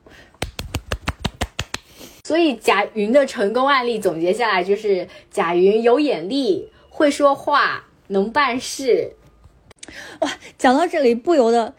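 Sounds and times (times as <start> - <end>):
hand claps: 0.3 - 2.0
speech: 2.3 - 9.2, 9.9 - 11.7.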